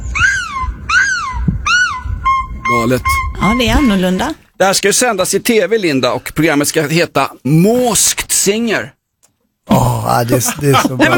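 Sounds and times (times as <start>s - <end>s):
person imitating a seagull scream: 0.0s - 2.4s
speech: 2.7s - 9.0s, 9.7s - 11.1s
laughter: 10.3s - 11.1s.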